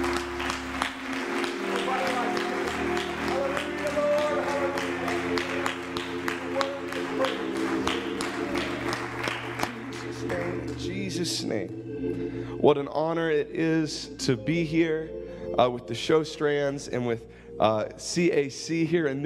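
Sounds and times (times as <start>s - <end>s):
audience hand clapping: 0.0s - 11.2s
speech: 12.6s - 19.2s.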